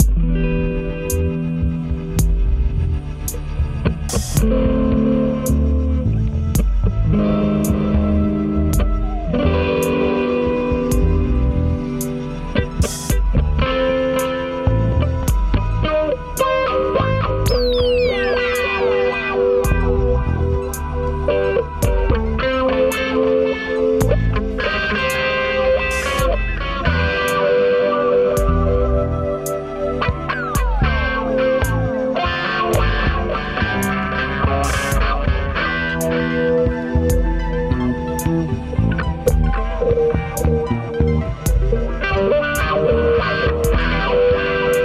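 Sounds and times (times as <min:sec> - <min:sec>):
synthetic waves: 0:00.0 - 0:44.8.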